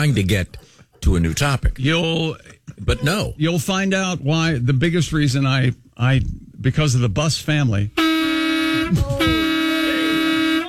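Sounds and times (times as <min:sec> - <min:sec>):
speech: 0:00.0 - 0:08.0, 0:08.9 - 0:09.4
loud horn honking: 0:08.0 - 0:10.6.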